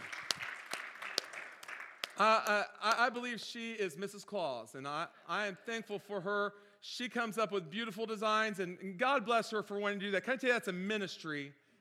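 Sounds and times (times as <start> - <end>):
faint audience applause at a church Christmas gathering: 0.0 - 2.6
speech: 2.2 - 11.6.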